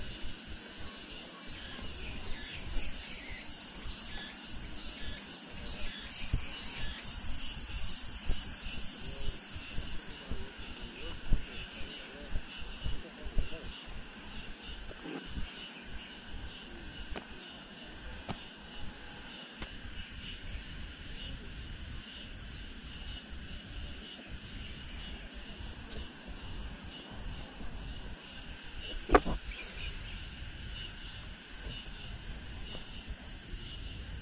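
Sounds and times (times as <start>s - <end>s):
cicadas singing after the rain at the Ming Xiaoling Mausoleum in Nanjing: 0.0s - 34.1s
sharp click: 29.1s - 29.4s.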